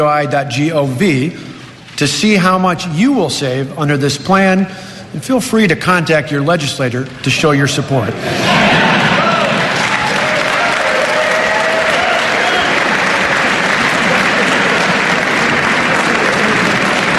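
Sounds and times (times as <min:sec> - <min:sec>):
speech: 0:00.0 - 0:08.9
audience applause: 0:08.3 - 0:17.1.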